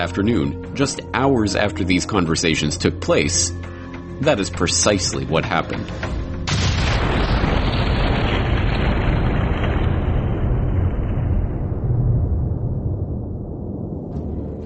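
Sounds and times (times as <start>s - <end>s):
speech: 0.0s - 6.2s
torpedo explosion striking ocean liner: 6.4s - 14.6s.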